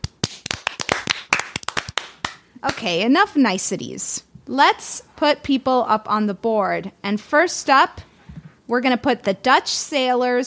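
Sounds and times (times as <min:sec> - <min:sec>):
hand clapping: 0:00.0 - 0:02.9
speech: 0:02.6 - 0:08.1, 0:08.7 - 0:10.4.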